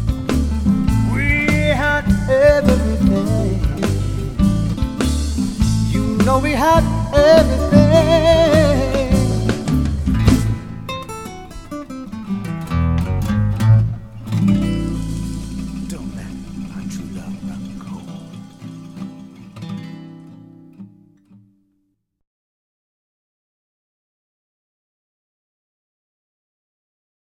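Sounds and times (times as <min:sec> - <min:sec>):
pop acoustic guitar: 0:00.0 - 0:21.5.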